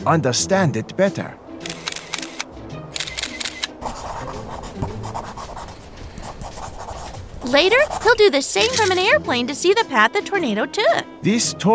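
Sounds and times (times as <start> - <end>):
speech: 0.0 - 1.4, 7.5 - 11.7
camera shutter clicks taking pictures: 1.6 - 3.8.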